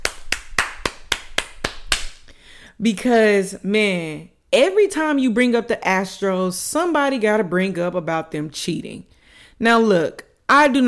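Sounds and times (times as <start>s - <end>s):
hand clapping: 0.0s - 2.3s
speech: 2.8s - 10.8s.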